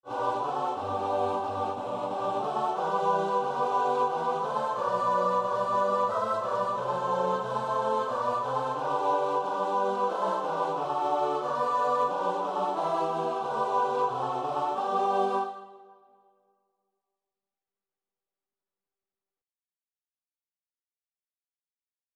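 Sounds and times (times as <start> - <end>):
choir singing a song: 0.0 - 16.1.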